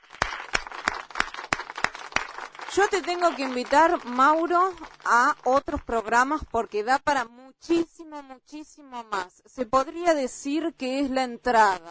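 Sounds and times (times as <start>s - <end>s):
rhythmic audience clapping: 0.0s - 5.9s
speech: 2.8s - 11.9s.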